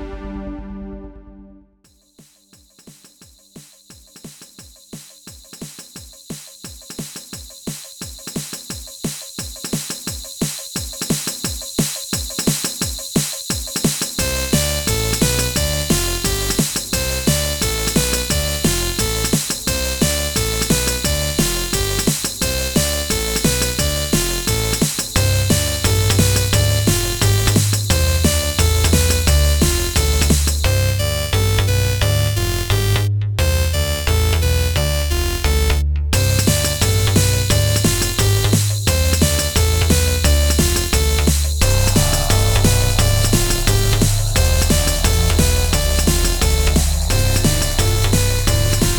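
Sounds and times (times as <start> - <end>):
drums: 1.9 - 48.9.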